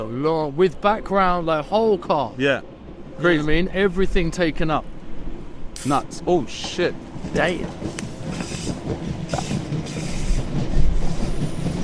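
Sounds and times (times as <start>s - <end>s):
speech: 0.0s - 4.9s, 5.8s - 9.0s
train car rolling by with a rumbling clatter: 5.8s - 11.8s
train wheel squeal: 8.1s - 11.8s.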